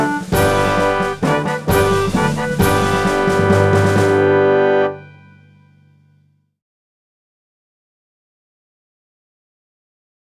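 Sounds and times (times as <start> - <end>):
clarinet: 0.0 - 5.7.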